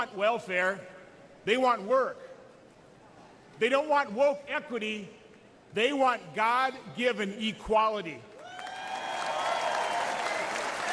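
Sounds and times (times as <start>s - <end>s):
speech: 0.0s - 2.2s, 3.6s - 8.3s
audience applause at a Republican political speech: 8.4s - 10.9s.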